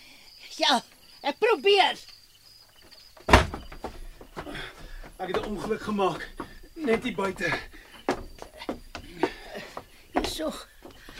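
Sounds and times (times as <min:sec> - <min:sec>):
speech: 0:00.6 - 0:02.1, 0:05.2 - 0:07.8, 0:10.4 - 0:10.7
door knocks and rattles as it settles: 0:03.2 - 0:11.1
door being shut: 0:03.3 - 0:03.9.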